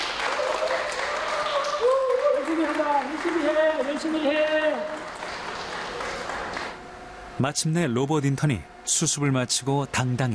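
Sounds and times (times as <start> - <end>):
people clapping to welcome a humanoid robot employee: 0.0 - 6.9
speech: 3.8 - 5.0, 7.4 - 10.3.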